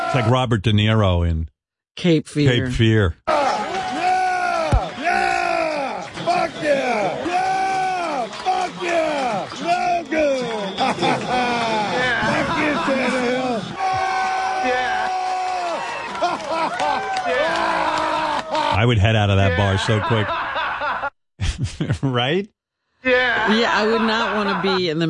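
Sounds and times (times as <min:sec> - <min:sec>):
speech: 0:00.1 - 0:03.2, 0:18.7 - 0:20.5, 0:21.6 - 0:25.0
man screaming and whooping wildly while cheering in bar: 0:03.3 - 0:06.1, 0:07.0 - 0:09.8, 0:11.1 - 0:18.8
crowd noise and chatter in bar: 0:03.3 - 0:14.0
laughter: 0:08.3 - 0:13.8, 0:16.0 - 0:22.4, 0:23.1 - 0:25.0.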